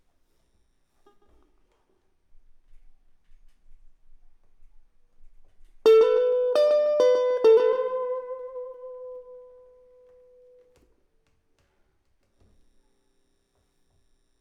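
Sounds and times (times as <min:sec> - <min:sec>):
electric guitar: 0:05.9 - 0:10.2.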